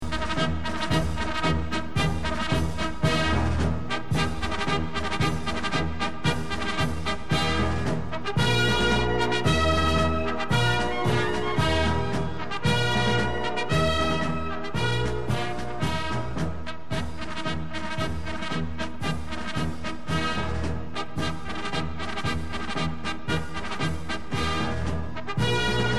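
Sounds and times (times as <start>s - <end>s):
military march: 0.0s - 25.9s.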